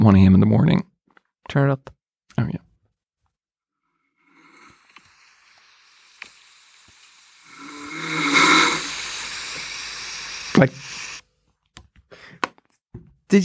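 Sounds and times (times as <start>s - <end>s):
speech: 0.0s - 0.9s, 1.5s - 2.6s, 10.6s - 11.1s
recorded snoring: 4.2s - 11.2s.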